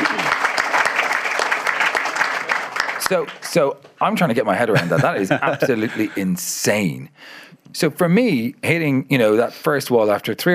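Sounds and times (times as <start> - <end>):
applause: 0.0 - 3.8
speech: 3.1 - 10.5
laughter: 4.6 - 6.3.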